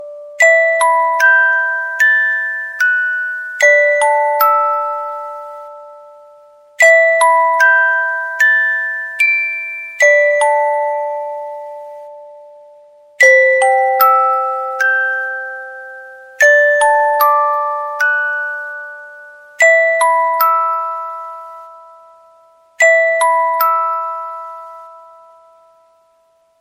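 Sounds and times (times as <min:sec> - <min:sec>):
music box: 0:00.0 - 0:26.6.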